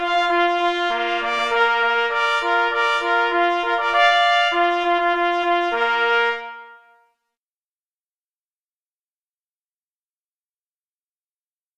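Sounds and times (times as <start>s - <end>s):
march music: 0.0s - 7.0s.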